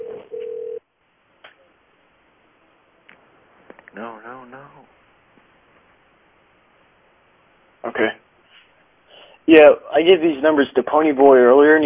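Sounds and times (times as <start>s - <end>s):
telephone dialing out tone: 0.0s - 0.8s
speech: 8.0s - 8.2s, 9.5s - 11.8s.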